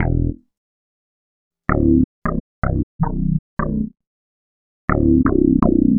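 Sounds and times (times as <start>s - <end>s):
hard Latin bass: 0.0s - 0.4s, 1.7s - 3.9s, 4.9s - 5.9s.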